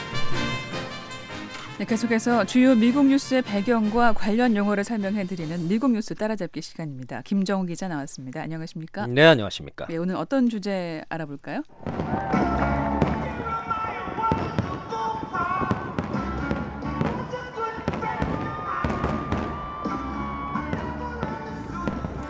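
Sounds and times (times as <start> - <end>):
speech: 1.8 - 12.9
Independence Day fireworks exploding: 11.7 - 22.2.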